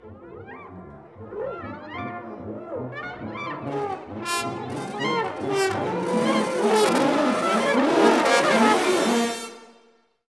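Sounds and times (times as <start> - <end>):
brass ensemble effects: 3.5 - 9.8.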